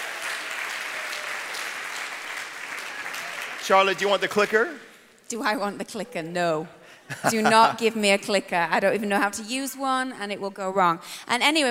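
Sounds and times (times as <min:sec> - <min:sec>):
audience applause: 0:00.0 - 0:04.6
speech: 0:03.7 - 0:11.7
laughter: 0:07.1 - 0:07.8.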